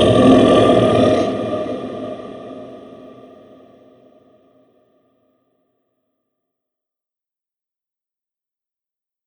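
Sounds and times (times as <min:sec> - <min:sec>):
dragon monster sounds: 0:00.0 - 0:03.6.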